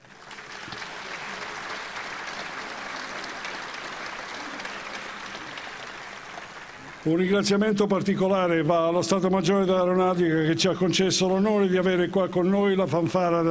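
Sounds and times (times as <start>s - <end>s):
audience applause: 0.0s - 7.5s
speech: 7.0s - 13.4s.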